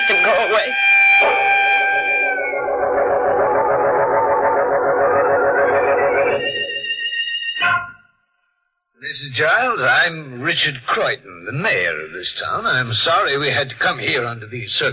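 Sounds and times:
police sirens: 0:00.0 - 0:06.8
speech: 0:00.2 - 0:01.7, 0:09.2 - 0:14.9.

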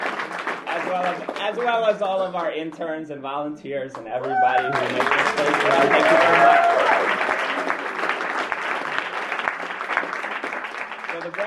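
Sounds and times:
audience clapping: 0:00.0 - 0:02.9, 0:03.9 - 0:11.4
speech: 0:00.9 - 0:07.3, 0:11.2 - 0:11.4.

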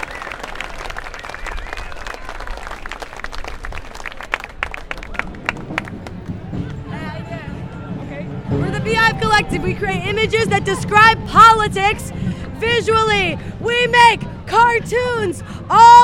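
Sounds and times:
crowd applauding marchers: 0:00.0 - 0:07.6
speech: 0:08.9 - 0:16.0.

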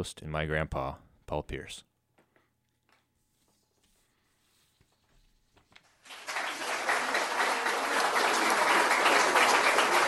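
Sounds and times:
speech: 0:00.0 - 0:01.9
crowd applauding: 0:05.9 - 0:10.0.

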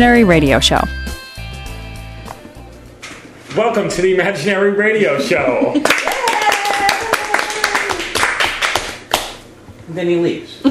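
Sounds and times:
speech: 0:00.0 - 0:01.1, 0:03.6 - 0:06.2, 0:09.9 - 0:10.6
person clapping hands: 0:05.8 - 0:09.4.

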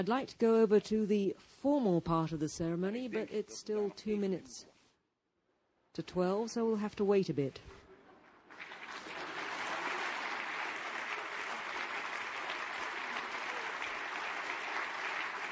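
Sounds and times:
speech: 0:00.0 - 0:04.7, 0:06.0 - 0:07.8
audience applause: 0:08.5 - 0:15.4.

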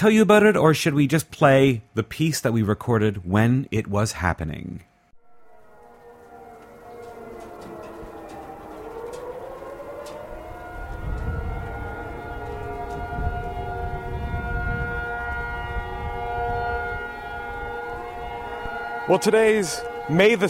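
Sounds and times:
speech: 0:00.0 - 0:04.9, 0:19.1 - 0:20.4
alarm sirens: 0:05.1 - 0:20.4.

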